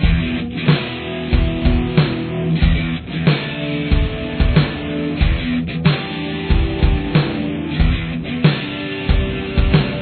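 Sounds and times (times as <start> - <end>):
guitar playing a verse: 0.0 - 9.9.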